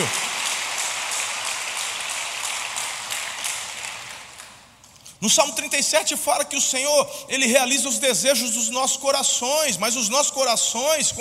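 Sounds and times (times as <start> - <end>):
audience applause: 0.0 - 4.6
speech: 5.2 - 11.1.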